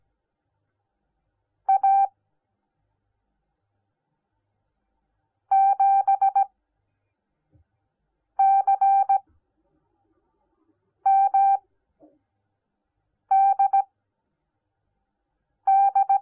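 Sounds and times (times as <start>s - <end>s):
morse code beeps: 1.7s - 2.1s, 5.5s - 6.5s, 8.4s - 9.2s, 11.1s - 11.6s, 13.3s - 13.9s, 15.7s - 16.1s.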